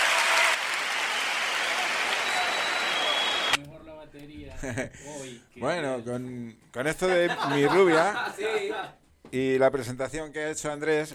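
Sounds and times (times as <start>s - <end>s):
enthusiastic audience applause: 0.0s - 3.6s
speech: 4.6s - 11.1s
laughter: 7.1s - 8.9s.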